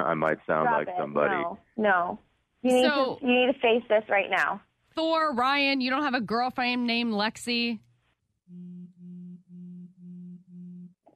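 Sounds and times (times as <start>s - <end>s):
speech: 0.0s - 7.9s
cell phone vibrating: 8.4s - 11.1s.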